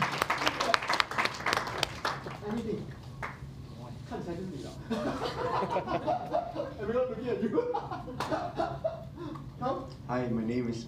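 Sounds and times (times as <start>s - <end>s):
audience applause: 0.0s - 2.4s
speech: 4.3s - 8.8s, 10.2s - 10.8s
laughter: 4.8s - 9.4s.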